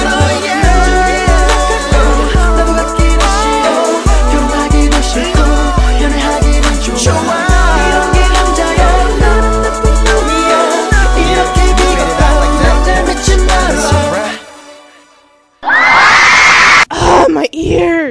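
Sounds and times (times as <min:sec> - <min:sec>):
pop track with a thumping beat: 0:00.0 - 0:14.6
fans screaming for a Korean pop group's comeback: 0:15.6 - 0:16.9.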